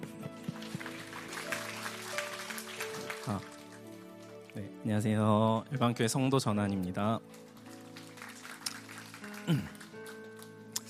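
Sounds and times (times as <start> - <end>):
crowd applauding: 0.0 - 4.6, 5.8 - 10.8
speech: 3.3 - 3.5, 4.5 - 7.5, 9.5 - 9.8.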